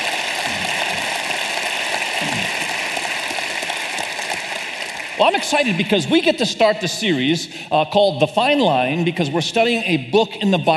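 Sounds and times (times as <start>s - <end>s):
audience applause: 0.0s - 6.3s
speech: 5.2s - 10.7s.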